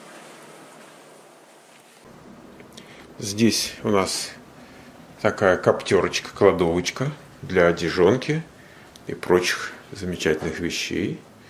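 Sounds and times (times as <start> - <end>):
air conditioner ventilation hum: 0.0 - 11.4
speech: 3.2 - 4.4, 5.2 - 8.5, 9.1 - 11.3.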